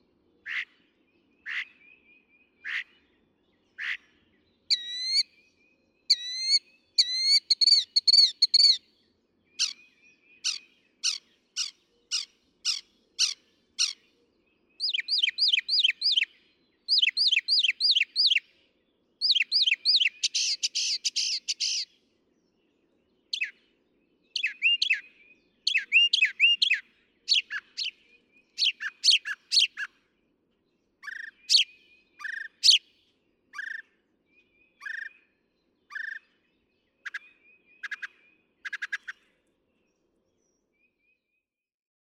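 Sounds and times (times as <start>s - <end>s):
Northern Mockingbird singing: 3.8s - 5.3s, 6.1s - 8.8s, 9.6s - 14.0s, 14.8s - 16.3s, 16.9s - 18.4s, 19.2s - 21.9s, 24.3s - 29.9s, 31.0s - 32.9s, 33.5s - 39.2s.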